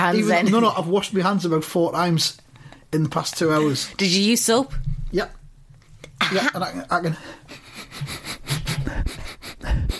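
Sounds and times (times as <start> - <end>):
speech: 0.0 - 5.4, 6.2 - 8.3
person sniffing fingers: 7.4 - 9.9.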